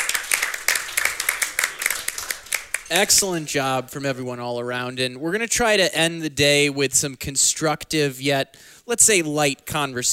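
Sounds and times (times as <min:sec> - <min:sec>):
crowd applauding: 0:00.0 - 0:03.6
speech: 0:02.9 - 0:10.1.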